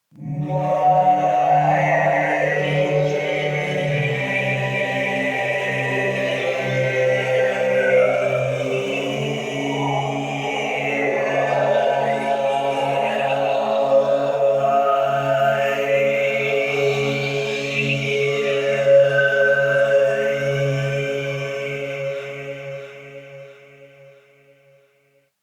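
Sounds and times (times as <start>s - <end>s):
choir singing: 0.2s - 24.3s.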